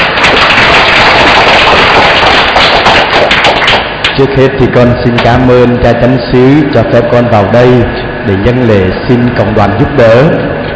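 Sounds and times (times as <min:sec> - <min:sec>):
audience applause: 0:00.0 - 0:04.2
speech: 0:04.2 - 0:10.5.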